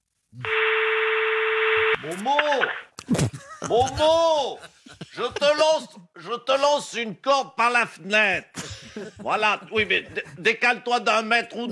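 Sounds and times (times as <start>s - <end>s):
telephone ringing tone: 0.5s - 2.1s
speech: 2.0s - 11.6s
laughter: 3.1s - 5.8s, 8.5s - 10.5s.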